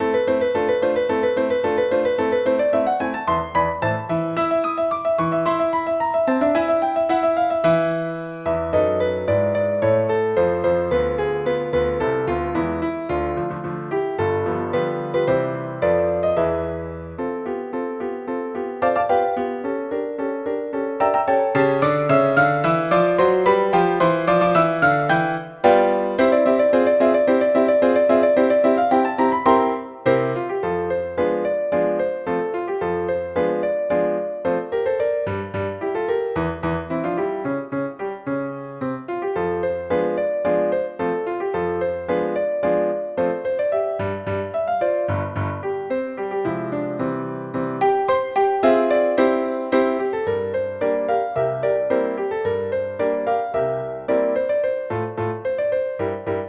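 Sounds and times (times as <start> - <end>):
piano: 0.0 - 56.4.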